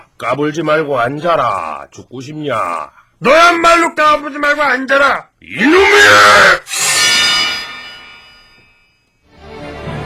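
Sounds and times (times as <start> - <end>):
speech: 0.2 - 6.8
sword being drawn from its sheath: 6.7 - 8.7.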